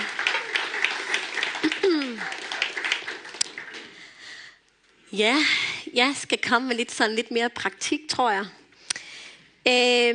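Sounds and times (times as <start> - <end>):
audience clapping: 0.0 - 4.4
speech: 5.1 - 8.6, 9.6 - 10.1.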